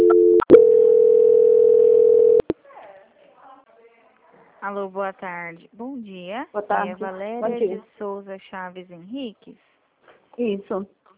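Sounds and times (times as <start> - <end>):
telephone call transfer tone: 0.0 - 2.4
speech: 4.7 - 9.7, 10.4 - 11.0.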